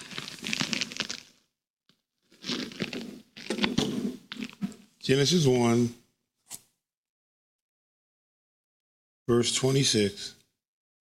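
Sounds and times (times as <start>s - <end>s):
pages of a paper Bible turning: 0.0s - 1.4s, 2.3s - 4.7s
speech: 5.1s - 6.0s, 9.3s - 10.4s.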